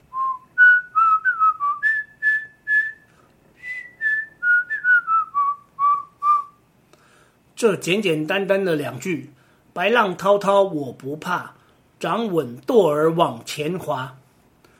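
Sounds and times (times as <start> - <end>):
person whistling a folk song melody: 0.1 - 6.6
speech: 7.6 - 14.2.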